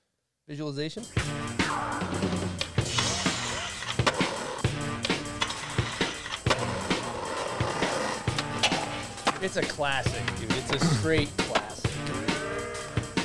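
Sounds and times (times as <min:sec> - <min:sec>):
speech: 0:00.5 - 0:02.6, 0:09.4 - 0:11.6
music from a skate video: 0:01.0 - 0:13.2
skateboard wheels rolling: 0:02.8 - 0:10.1.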